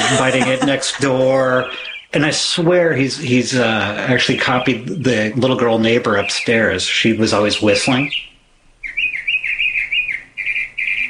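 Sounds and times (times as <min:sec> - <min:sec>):
laughter: 0:00.0 - 0:02.1
speech: 0:00.1 - 0:08.3
bird singing varied songs: 0:01.5 - 0:02.2, 0:07.8 - 0:11.0.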